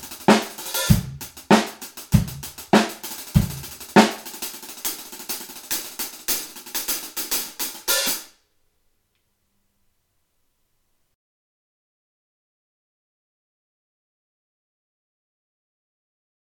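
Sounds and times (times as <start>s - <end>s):
hi-hat: 0.0s - 8.3s.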